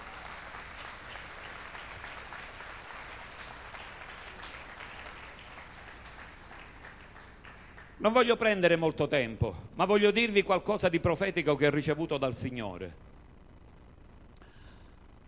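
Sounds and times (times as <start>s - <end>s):
applause: 0.0s - 8.5s
speech: 8.0s - 13.0s.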